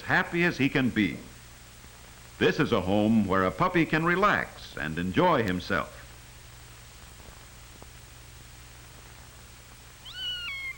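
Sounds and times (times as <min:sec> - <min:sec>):
low steady hum: 0:00.0 - 0:10.7
speech: 0:00.1 - 0:01.3, 0:02.4 - 0:06.0
cat meowing: 0:10.0 - 0:10.7.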